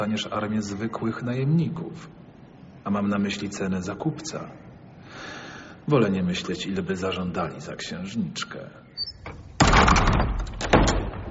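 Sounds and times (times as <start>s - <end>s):
speech: 0.0s - 2.2s, 2.8s - 8.8s
door being shut: 9.2s - 11.2s.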